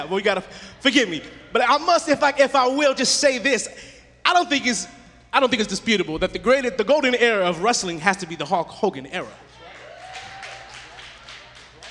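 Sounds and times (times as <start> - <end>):
speech: 0.0 - 9.6
a couple of audience claps: 9.5 - 11.8.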